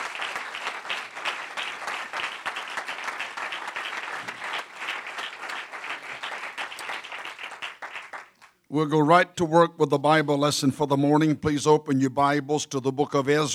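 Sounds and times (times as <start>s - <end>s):
audience applause: 0.0s - 8.5s
speech: 8.7s - 13.5s.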